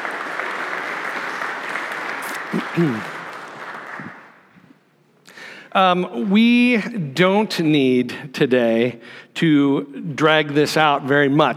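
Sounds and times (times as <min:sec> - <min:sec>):
audience applause: 0:00.0 - 0:04.5
speech: 0:02.5 - 0:03.1, 0:05.8 - 0:11.5.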